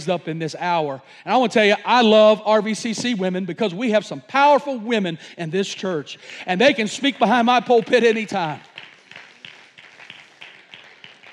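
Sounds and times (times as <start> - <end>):
speech: 0.0 - 8.7
weak polite golf clap applause: 7.5 - 11.3.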